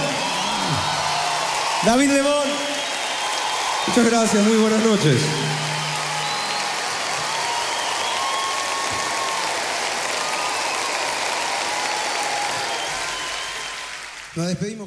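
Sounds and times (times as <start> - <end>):
audience applause: 0.0 - 14.8
speech: 1.8 - 2.7, 3.9 - 5.7, 14.4 - 14.8.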